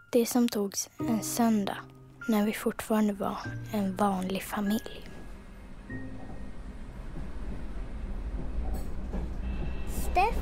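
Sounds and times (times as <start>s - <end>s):
speech: 0.1s - 5.1s, 10.1s - 10.4s
train arriving at Gothenburg central station: 3.8s - 10.4s.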